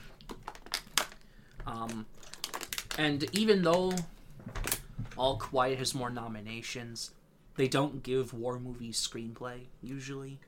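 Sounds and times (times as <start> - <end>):
plastic water bottle crinkling: 0.0 - 4.9
speech: 1.8 - 2.2, 3.0 - 4.1, 5.2 - 10.4.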